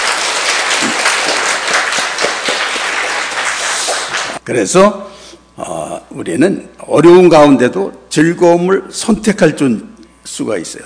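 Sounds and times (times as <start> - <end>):
audience clapping: 0.0 - 4.4
speech: 4.5 - 10.8.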